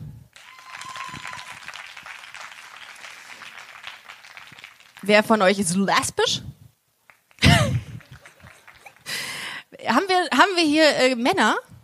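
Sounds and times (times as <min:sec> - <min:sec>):
audience clapping: 0:00.3 - 0:05.6, 0:07.0 - 0:09.5
speech: 0:05.0 - 0:06.5, 0:10.6 - 0:11.7
laughter: 0:07.4 - 0:09.2.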